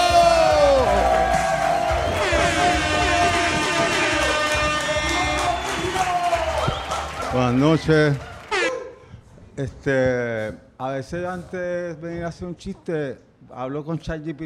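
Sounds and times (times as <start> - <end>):
audience applause and cheering: 0.0 - 8.7
speech: 7.4 - 8.3, 9.6 - 14.4.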